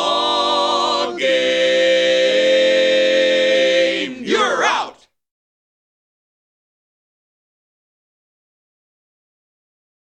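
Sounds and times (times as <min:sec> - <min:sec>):
a cappella lead singing: 0:00.0 - 0:04.6.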